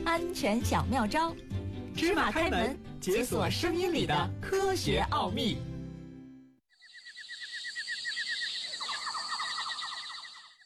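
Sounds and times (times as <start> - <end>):
speech: 0.1 - 5.7
cicadas singing in summer: 6.7 - 10.6.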